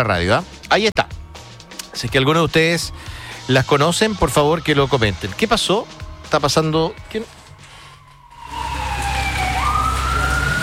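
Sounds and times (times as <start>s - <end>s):
speech: 0.0s - 1.2s, 2.0s - 7.4s
police patrol car siren passing at speed: 4.2s - 5.4s, 7.8s - 10.6s
traffic rumble: 7.3s - 10.6s.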